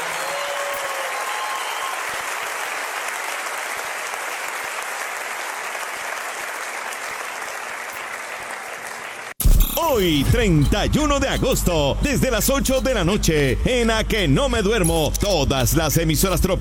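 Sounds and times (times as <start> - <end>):
audience applause: 0.0 - 9.4
speech: 9.8 - 16.5.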